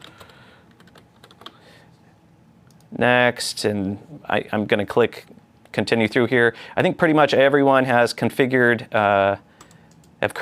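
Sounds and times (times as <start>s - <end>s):
typing a password on a computer keyboard: 0.0s - 1.6s, 9.6s - 10.1s
speech: 3.0s - 9.5s, 10.2s - 10.4s.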